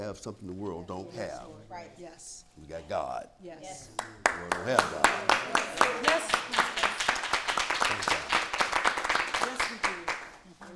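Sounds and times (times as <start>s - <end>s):
speech: 0.1s - 7.2s, 9.7s - 10.7s
audience clapping: 3.8s - 10.7s.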